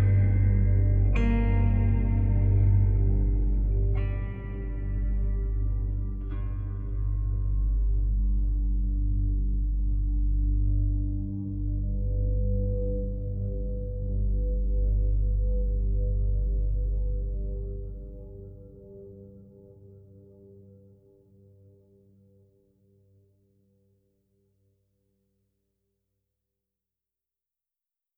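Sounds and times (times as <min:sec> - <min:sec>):
gravestone ambient music: 0:00.0 - 0:22.4.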